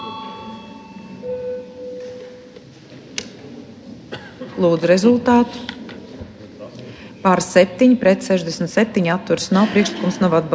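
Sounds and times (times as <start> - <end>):
parliament voting electric bell ringing: 0.0 - 2.5
steady mid-pitched tone: 0.0 - 2.6
murmuring chamber: 0.0 - 10.5
speech: 4.6 - 5.7, 7.2 - 10.5.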